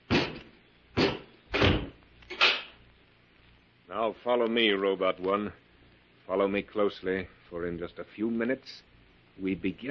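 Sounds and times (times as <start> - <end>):
door being closed and bolted: 1.0 - 2.7
speech: 3.9 - 5.6, 6.3 - 9.9.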